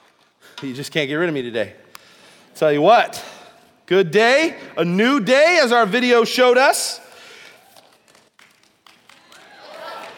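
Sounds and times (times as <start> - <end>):
speech: 0.6 - 1.8, 2.6 - 3.3, 3.9 - 7.0
scattered uneven audience clapping: 7.1 - 10.1.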